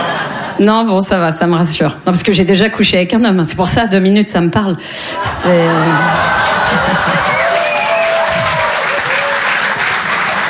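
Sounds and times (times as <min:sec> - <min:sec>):
laughter: 0:00.0 - 0:00.6, 0:05.3 - 0:09.3
speech: 0:00.6 - 0:07.3
crowd clapping: 0:05.9 - 0:10.4
whoops and cheers: 0:06.0 - 0:10.4.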